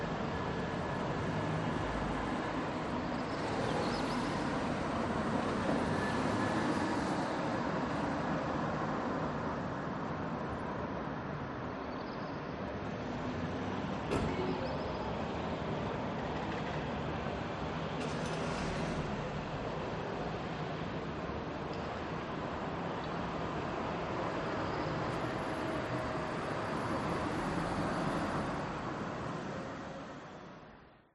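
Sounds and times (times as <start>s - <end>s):
tram passing by: 0.0s - 10.3s, 12.7s - 30.8s
daytime medium traffic heard from a balcony: 0.0s - 31.0s.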